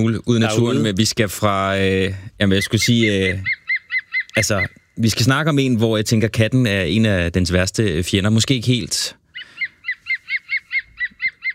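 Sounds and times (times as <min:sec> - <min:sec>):
speech: 0:00.0 - 0:03.6, 0:04.4 - 0:09.2
green woodpecker laughing call: 0:02.6 - 0:05.0, 0:09.3 - 0:11.5.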